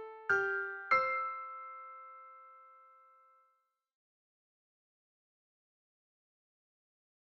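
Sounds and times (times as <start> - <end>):
music box: 0.4 - 3.6.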